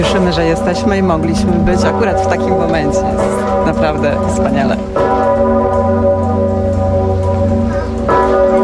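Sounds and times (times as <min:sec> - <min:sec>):
large church bell tolling: 0:00.0 - 0:08.6
speech: 0:00.1 - 0:05.6.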